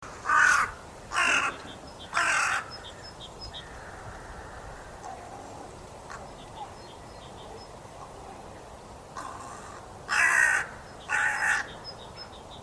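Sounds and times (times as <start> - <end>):
carrion crow Corvus corone giving harsh broad caws: 0.2 - 5.0, 9.2 - 11.7.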